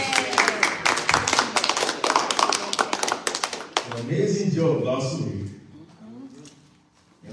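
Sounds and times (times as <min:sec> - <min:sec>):
round of applause: 0:00.0 - 0:04.1
speech: 0:04.0 - 0:05.6.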